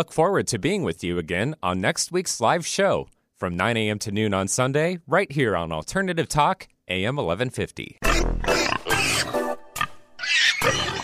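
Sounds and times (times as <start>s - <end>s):
speech: 0.0s - 8.7s
pigs squealing: 8.0s - 11.0s.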